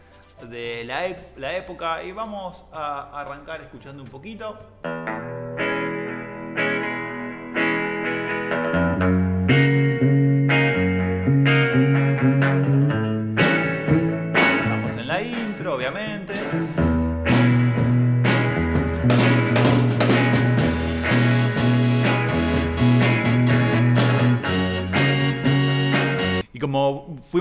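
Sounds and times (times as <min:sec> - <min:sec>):
speech: 0:00.4 - 0:05.2
1960s Argentine beat rock song intro: 0:04.9 - 0:26.4.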